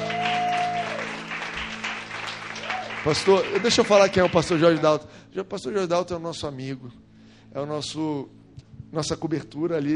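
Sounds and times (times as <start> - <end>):
round of applause: 0.0 - 4.8
speech: 3.0 - 9.9.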